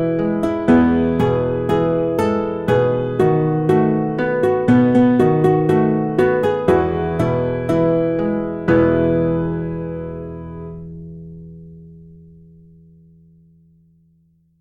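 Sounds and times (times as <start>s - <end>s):
lullaby played on guitar: 0.0s - 11.6s.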